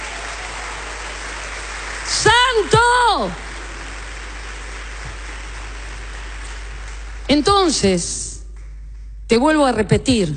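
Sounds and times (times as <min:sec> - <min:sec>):
crowd applauding: 0:00.0 - 0:07.8
speech: 0:02.2 - 0:03.5, 0:07.3 - 0:08.3, 0:09.3 - 0:10.3.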